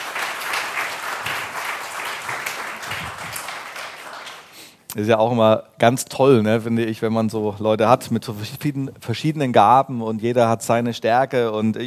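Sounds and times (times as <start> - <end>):
audience applause: 0.0 - 4.6
speech: 5.0 - 11.8.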